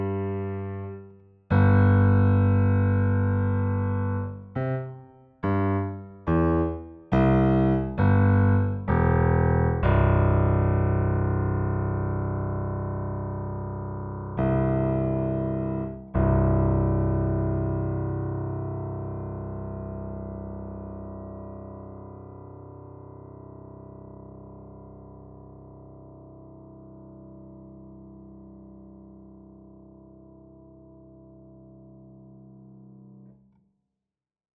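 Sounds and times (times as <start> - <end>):
bass playing a chromatic scale: 0.0 - 33.2.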